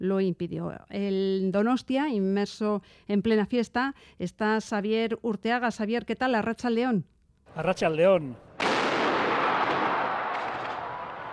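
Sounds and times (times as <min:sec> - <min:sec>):
speech: 0:00.0 - 0:08.5
ceremonial cannon shot opening the festival week on a seafront promenade: 0:08.6 - 0:11.0.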